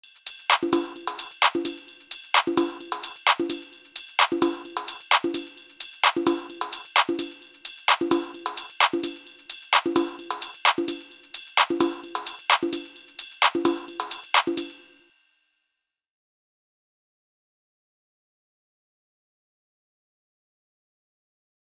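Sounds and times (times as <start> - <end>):
top loop: 0.0 - 14.8.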